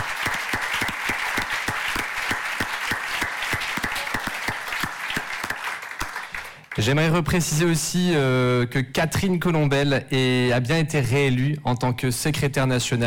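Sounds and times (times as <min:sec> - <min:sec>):
audience applause for forum organisers: 0:00.0 - 0:07.0
speech: 0:06.8 - 0:13.0.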